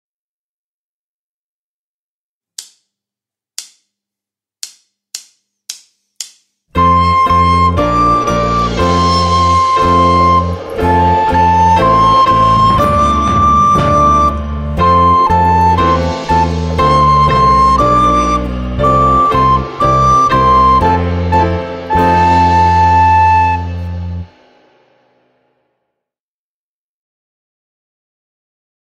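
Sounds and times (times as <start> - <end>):
fast recorder playing: 6.8 - 24.2.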